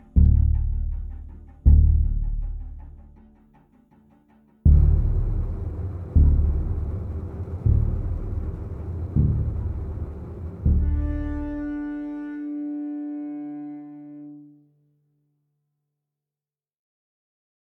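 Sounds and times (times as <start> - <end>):
stealth music loop: 0.0 - 3.4, 4.7 - 14.4.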